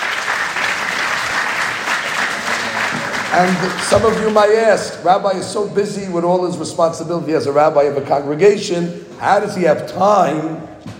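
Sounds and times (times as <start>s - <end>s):
audience applause: 0.0s - 4.9s
speech: 3.4s - 10.7s.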